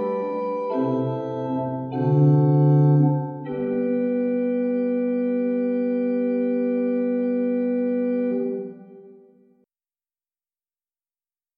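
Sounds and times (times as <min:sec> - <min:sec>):
Prengel pipe organ: 0:00.0 - 0:09.2.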